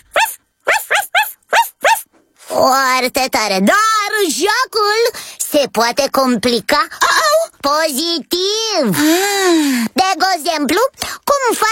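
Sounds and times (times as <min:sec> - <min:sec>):
voice imitating a puppy barking: 0:00.0 - 0:02.1
speech: 0:02.6 - 0:11.7.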